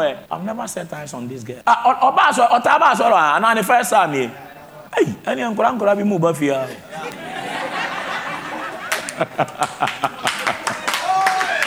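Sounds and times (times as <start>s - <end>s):
speech: 0.0s - 7.3s, 9.2s - 10.3s
laughter: 6.6s - 11.6s
audience clapping: 8.6s - 11.6s.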